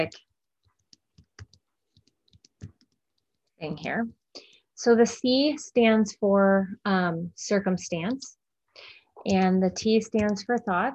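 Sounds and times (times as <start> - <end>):
speech: 0.0 - 0.2, 3.6 - 10.9
typing on a computer keyboard: 0.0 - 3.5, 9.3 - 10.9.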